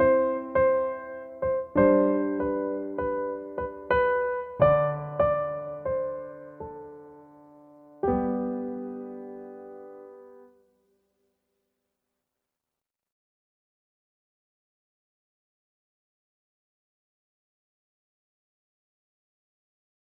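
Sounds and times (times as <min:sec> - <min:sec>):
Christmas song: 0:00.0 - 0:10.7.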